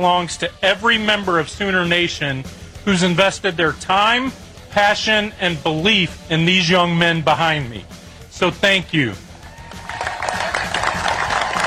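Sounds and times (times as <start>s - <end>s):
speech: 0.0s - 9.2s
celebratory crowd clapping at a University of Oklahoma baseball championship celebration: 9.6s - 11.6s.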